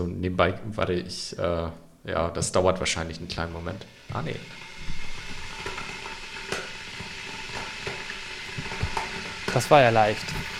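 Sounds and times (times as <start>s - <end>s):
speech: 0.0s - 4.6s, 9.5s - 10.5s
electric kettle heating water: 2.6s - 10.5s.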